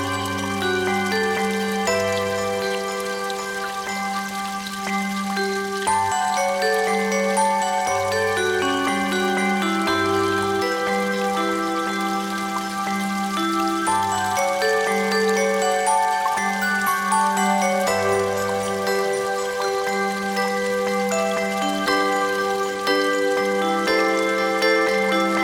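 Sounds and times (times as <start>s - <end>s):
mountain stream flowing: 0.0s - 25.4s
music: 0.0s - 25.4s.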